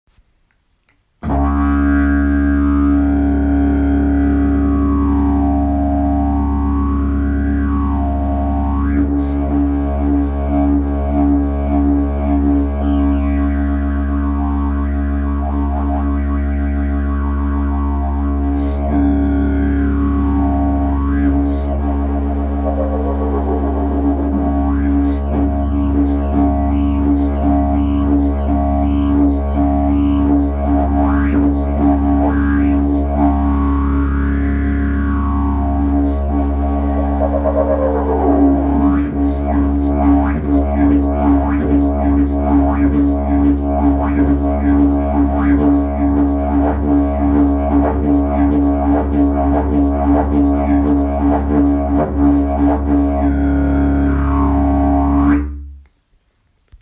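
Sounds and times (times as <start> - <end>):
didgeridoo: 1.2 - 56.0.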